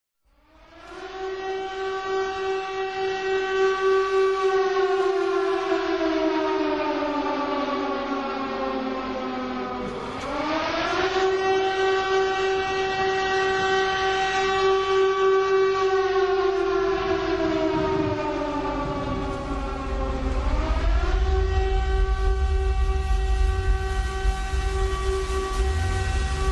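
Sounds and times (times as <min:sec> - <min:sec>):
siren: 0:00.3 - 0:26.5.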